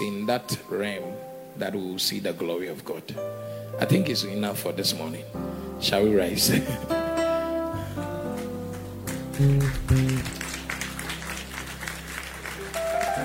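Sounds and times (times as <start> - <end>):
speech: 0.3 - 7.0, 9.4 - 10.4
audience clapping hands: 8.2 - 13.2.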